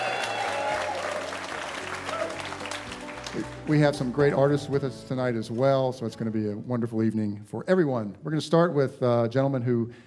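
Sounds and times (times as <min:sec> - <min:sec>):
audience applause at a live evening show at the Museum of Commerce: 0:00.0 - 0:04.2
speech: 0:03.4 - 0:10.0.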